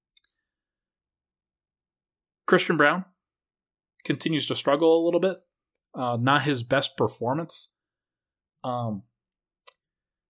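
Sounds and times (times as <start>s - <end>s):
speech: 2.5s - 3.1s, 4.0s - 7.8s, 8.6s - 9.1s
computer mouse clicks: 9.6s - 10.0s.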